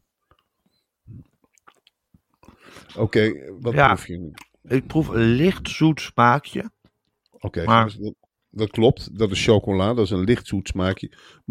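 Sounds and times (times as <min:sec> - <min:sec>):
chewing a piece of chocolate: 0:01.2 - 0:02.6
speech: 0:02.8 - 0:06.8, 0:07.4 - 0:11.5.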